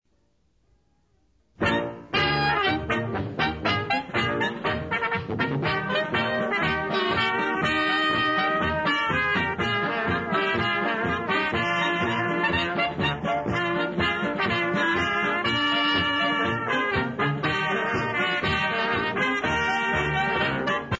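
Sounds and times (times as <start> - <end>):
polka music: 1.6 - 20.9.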